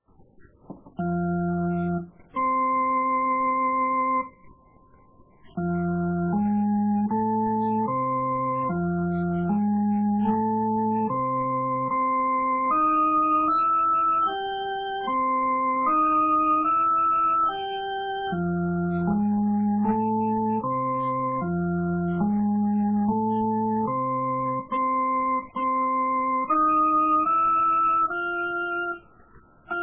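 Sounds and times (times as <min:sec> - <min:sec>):
boogie rhythm accompaniment: 0:00.8 - 0:04.3, 0:05.6 - 0:29.0.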